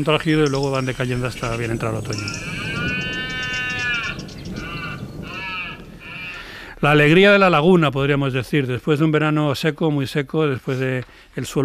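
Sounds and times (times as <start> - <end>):
speech: 0.0 - 2.7, 6.8 - 11.6
red deer stag bellowing during rut in the Sierra de los Alcornocales: 1.4 - 6.6.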